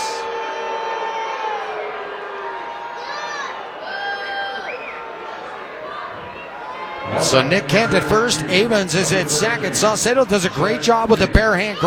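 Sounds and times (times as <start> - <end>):
laughter: 0.0 - 0.2, 5.6 - 11.8
large baseball crowd booing: 0.0 - 11.8
speech: 7.1 - 11.8.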